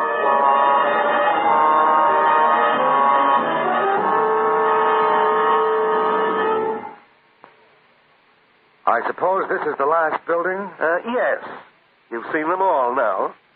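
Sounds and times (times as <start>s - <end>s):
alarm bell ringing: 0.0s - 7.0s
speech: 9.0s - 13.4s.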